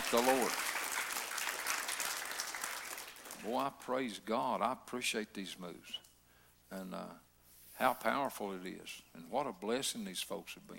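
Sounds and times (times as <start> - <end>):
audience clapping: 0.0 - 3.6
speech: 0.1 - 0.7, 3.4 - 6.0, 6.7 - 7.2, 7.8 - 10.7.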